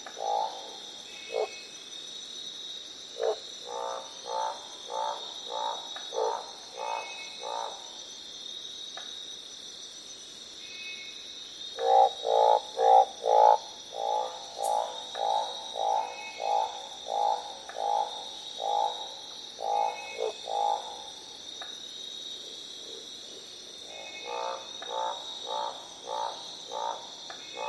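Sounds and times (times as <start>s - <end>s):
Northern barred frog croaks: 0.0s - 1.6s, 3.1s - 7.9s, 11.7s - 21.7s, 22.8s - 27.6s.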